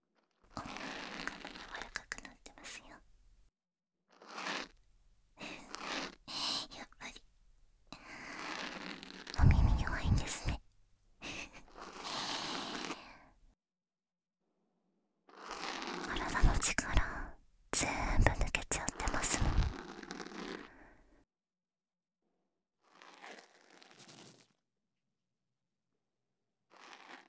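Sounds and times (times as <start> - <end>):
person whispering: 0.6 - 3.3, 5.4 - 10.6, 11.2 - 13.3, 16.0 - 19.9
bonten cotton puff brushing: 0.6 - 3.4, 4.4 - 10.6, 11.2 - 13.3, 15.5 - 20.8
ear cleaning: 0.6 - 3.4, 4.5 - 10.6, 11.2 - 13.2.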